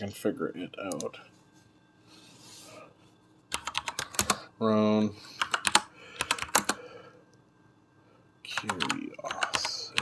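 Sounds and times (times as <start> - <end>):
speech: 0.0 - 1.4, 4.6 - 5.4, 8.6 - 9.4
typing a quote on a computer keyboard: 3.5 - 4.4, 5.4 - 6.8, 8.5 - 10.0.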